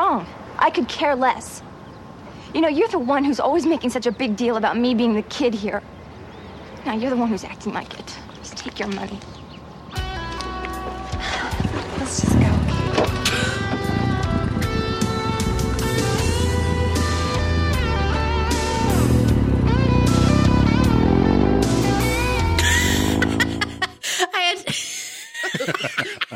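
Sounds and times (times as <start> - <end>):
speech: 0.1 - 1.7, 2.5 - 5.9, 6.8 - 9.4, 12.1 - 13.2
moody music: 9.9 - 24.0
motorcycle engine: 11.9 - 23.8
laughter: 22.6 - 26.3.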